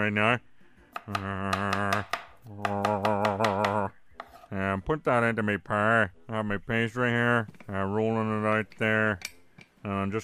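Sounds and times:
speech: 0:00.0 - 0:03.1, 0:04.5 - 0:10.2
dicing apples: 0:01.0 - 0:04.6.

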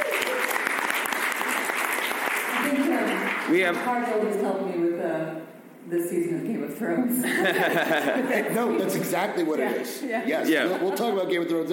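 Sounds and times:
audience applause: 0:00.0 - 0:03.8
speech: 0:03.5 - 0:11.7
laughter: 0:07.2 - 0:09.3, 0:10.5 - 0:11.5.

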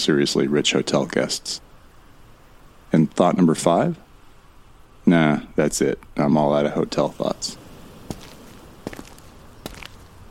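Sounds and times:
speech: 0:00.0 - 0:01.7, 0:02.9 - 0:04.0, 0:05.1 - 0:07.6
footsteps crunching on dusty gritty floor of a great ballroom: 0:08.0 - 0:10.2.

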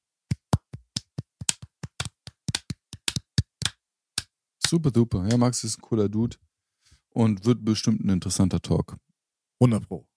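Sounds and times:
sparse applause by one or two people: 0:00.3 - 0:03.8
speech: 0:04.7 - 0:06.5, 0:07.2 - 0:10.1.

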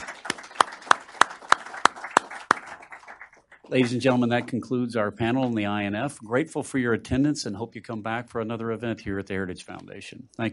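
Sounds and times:
sharp evenly spaced claps: 0:00.0 - 0:04.2
speech: 0:03.7 - 0:10.5.

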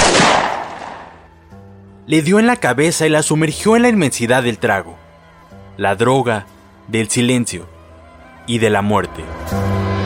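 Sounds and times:
pistol gunshot: 0:00.0 - 0:01.3
speech: 0:02.1 - 0:05.0, 0:05.8 - 0:07.7, 0:08.5 - 0:09.9.

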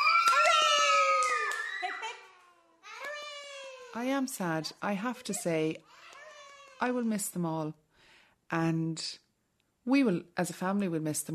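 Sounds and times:
scattered clapping: 0:00.0 - 0:02.1
group of voices shouting hooray: 0:00.0 - 0:03.8
speech: 0:04.0 - 0:06.0, 0:06.8 - 0:07.8, 0:08.5 - 0:09.2, 0:09.8 - 0:11.3.

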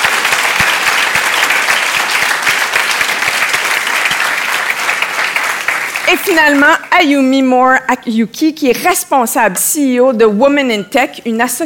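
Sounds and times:
crowd applauding: 0:00.0 - 0:06.9
speech: 0:06.1 - 0:11.6.

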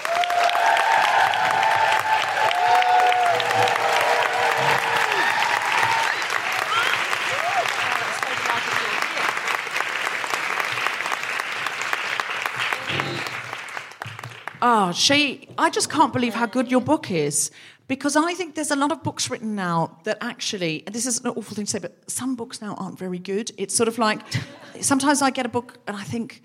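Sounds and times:
audience whooping: 0:00.0 - 0:09.3, 0:12.6 - 0:13.6
audience applauding as a guest is introduced: 0:00.0 - 0:14.9
speech: 0:14.9 - 0:26.4.

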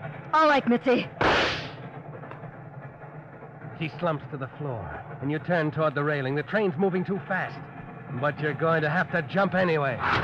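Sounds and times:
speech: 0:00.4 - 0:01.6, 0:03.8 - 0:10.2
32 automatic pistol gunshot: 0:01.2 - 0:01.7.

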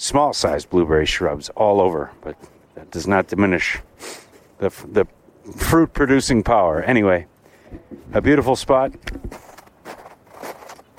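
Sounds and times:
speech: 0:00.0 - 0:09.4
footsteps crunching through snow: 0:09.1 - 0:10.9.

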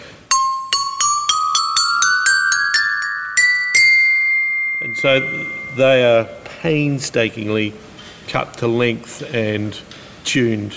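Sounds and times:
xylophone made from water heater pipe: 0:00.3 - 0:06.5
speech: 0:05.0 - 0:10.7.

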